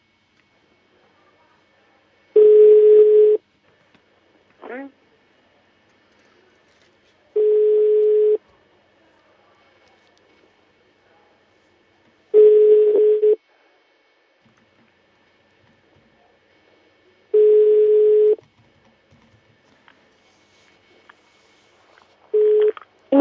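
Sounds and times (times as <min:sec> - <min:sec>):
telephone ringback tone while a call is transferred to voicemail: 0:02.4 - 0:03.4, 0:07.4 - 0:08.4, 0:12.4 - 0:13.4, 0:17.4 - 0:18.4, 0:22.4 - 0:22.7.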